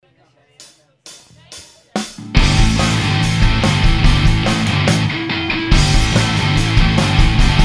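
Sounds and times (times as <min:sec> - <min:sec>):
funk music: 0:00.6 - 0:07.6.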